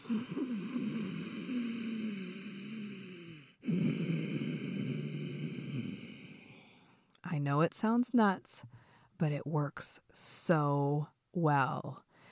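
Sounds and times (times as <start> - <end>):
Ujjayi yoga breathing through a constricted throat: 0.0 - 7.1
speech: 7.4 - 12.1.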